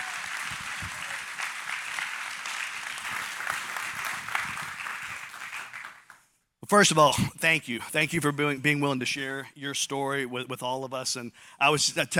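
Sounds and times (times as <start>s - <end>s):
crowd applause: 0.0s - 6.3s
speech: 6.7s - 12.1s.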